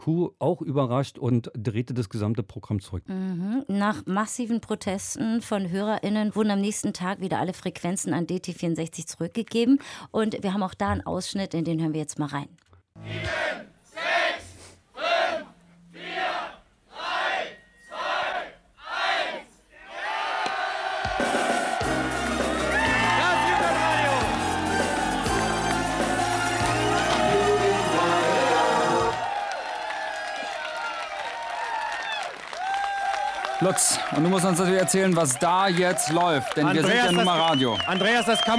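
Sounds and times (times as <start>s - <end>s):
speech: 0.0s - 13.7s, 33.6s - 38.5s
crowd chanting: 13.0s - 30.6s
crowd cheering and shouting: 18.9s - 38.5s.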